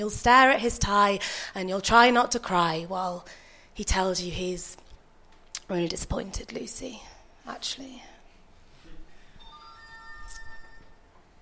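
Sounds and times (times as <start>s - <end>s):
speech: 0.0s - 4.8s, 5.7s - 8.1s
phone ringtone going off: 9.4s - 11.1s.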